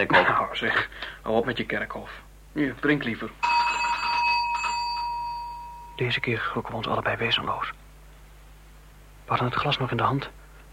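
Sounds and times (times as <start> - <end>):
speech: 0.0 - 3.5, 6.0 - 7.8, 9.3 - 10.4
doorbell ringing with a bright metallic tone: 3.4 - 6.5.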